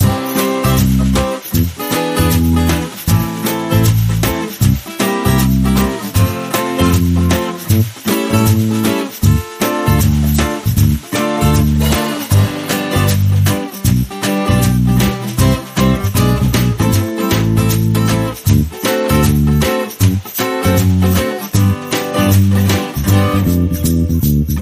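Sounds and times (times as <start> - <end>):
happiness music loop: 0.0 - 24.5.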